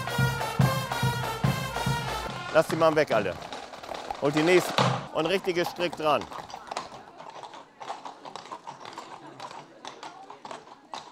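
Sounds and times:
horses' hooves clopping: 0:00.0 - 0:11.1
faint murmur of voices: 0:02.2 - 0:11.1
speech: 0:02.6 - 0:03.5, 0:04.2 - 0:06.4.

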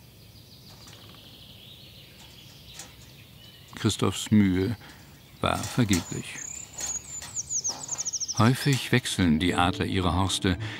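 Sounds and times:
blue tit calling: 0:00.0 - 0:09.1
outdoor hiss: 0:00.0 - 0:09.1
speech: 0:03.8 - 0:06.5, 0:08.4 - 0:10.7.

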